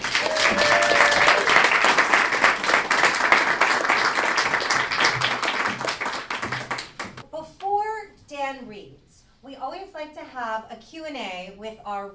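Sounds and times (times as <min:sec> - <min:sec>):
audience applause: 0:00.0 - 0:07.2
speech: 0:10.6 - 0:12.1.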